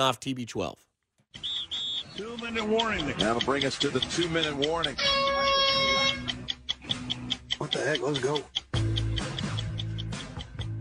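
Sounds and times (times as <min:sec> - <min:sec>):
speech: 0:00.0 - 0:05.3, 0:07.7 - 0:08.6
ticking clock: 0:02.1 - 0:10.7.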